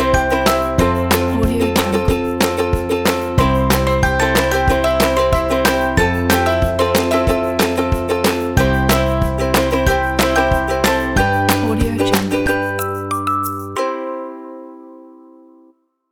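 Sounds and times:
happy ukulele folk music: 0.0 - 15.4.

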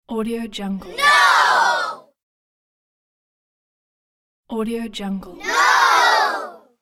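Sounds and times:
children shouting: 0.9 - 2.1, 5.4 - 6.7.

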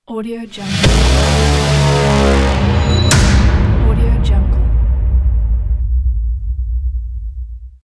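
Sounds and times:
horn impact: 0.6 - 7.8.

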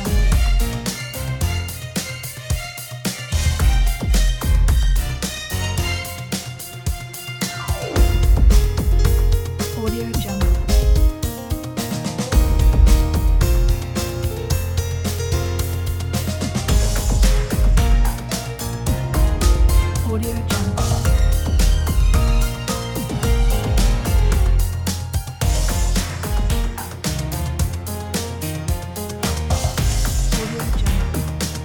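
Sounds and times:
piano: 0.0 - 2.6, 3.4 - 31.6
uplifting funk music: 0.0 - 31.6
violins: 0.0 - 31.6.

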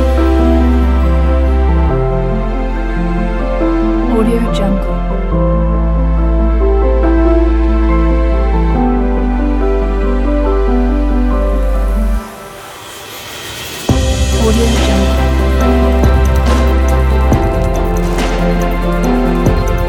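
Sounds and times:
emotional piano music: 0.0 - 19.8.

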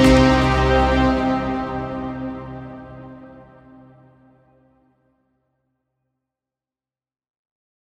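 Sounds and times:
intense cinematic action trailer music: 0.0 - 4.1.

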